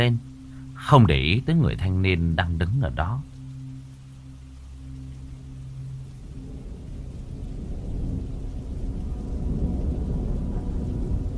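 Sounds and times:
speech: 0.0 - 3.3
thunder and storm: 6.5 - 11.3.

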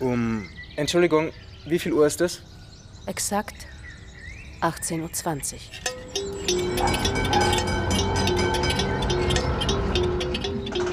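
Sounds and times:
speech: 0.0 - 3.8, 4.6 - 7.6
tram: 5.9 - 10.9.

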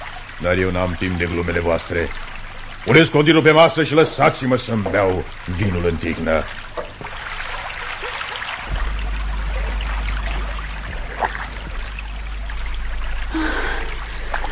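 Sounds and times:
water sloshing and trickling: 0.0 - 14.5
speech: 0.4 - 7.1
low rumble: 8.6 - 14.5.

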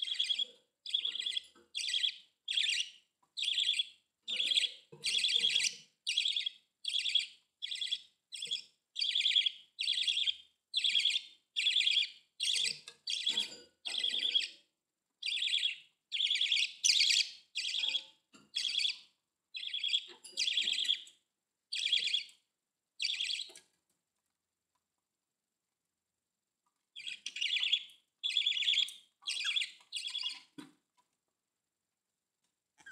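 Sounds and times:
budgerigar chirping: 0.0 - 14.6, 15.2 - 21.1, 21.7 - 22.3, 23.0 - 23.5, 27.0 - 30.6, 32.8 - 32.9.

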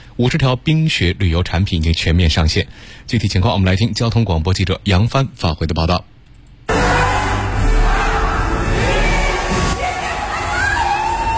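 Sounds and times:
speech: 0.2 - 6.1
crowd of over 1,000 visitors cheering at Yongdingmen Park, Beijing: 6.7 - 11.3.

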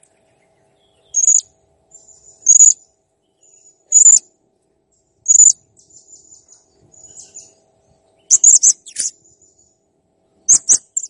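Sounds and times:
blue-crowned hanging parrot chirps and squeaky trills: 1.1 - 2.8, 3.9 - 4.2, 5.3 - 5.6, 8.3 - 9.3, 10.5 - 11.0.

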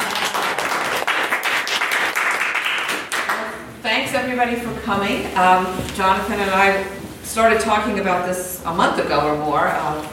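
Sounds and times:
audience applause: 0.0 - 3.5
speech: 4.0 - 10.1.

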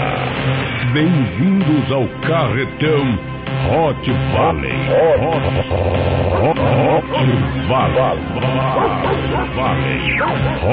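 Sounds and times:
music: 0.0 - 10.7
speech: 0.9 - 10.7
laughter: 4.6 - 10.7
dog barking: 8.0 - 10.7.

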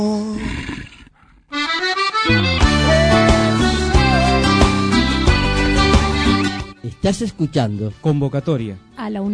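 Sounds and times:
wolf growling: 0.3 - 1.5
loud steady music with strong sustained tones and a driving beat: 2.3 - 6.8
speech: 7.1 - 9.3.

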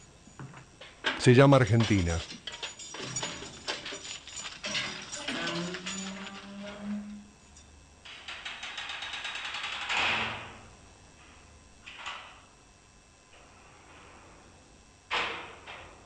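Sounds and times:
heavy metal prison door slamming: 1.1 - 6.8, 8.1 - 10.6
speech: 1.2 - 2.4.

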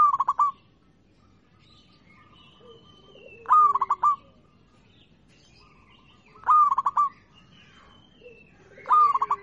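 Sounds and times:
zebra dove singing in stuttering bursts of rapid cooing notes: 0.0 - 0.7, 2.0 - 4.7, 5.7 - 9.4.

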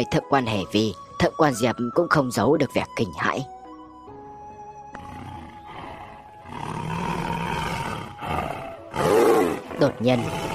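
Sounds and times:
speech: 0.0 - 3.6, 9.8 - 10.5
fearsome wild beast roaring: 4.9 - 10.5.

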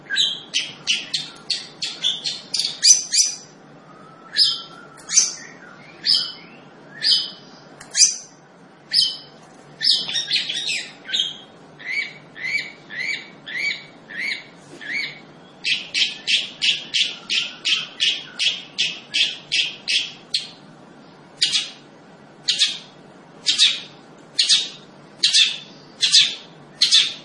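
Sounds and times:
Long-tailed shrike singing lively: 0.0 - 27.2.

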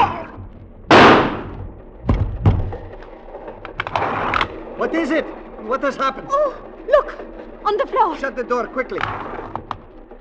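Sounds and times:
heavy thuds: 0.6 - 3.0
gunshot in radio drama: 0.9 - 1.6
speech: 4.9 - 9.3.

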